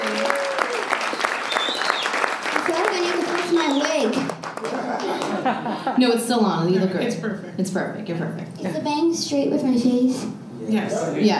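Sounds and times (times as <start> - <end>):
audience applause: 0.0 - 5.6
laughter: 4.6 - 6.1
speech: 5.5 - 11.3.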